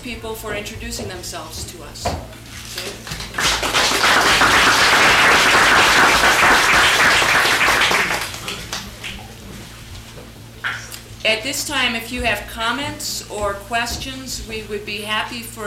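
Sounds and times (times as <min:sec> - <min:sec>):
speech: 0:00.0 - 0:03.6, 0:11.3 - 0:15.6
room full of people applauding: 0:03.2 - 0:09.3.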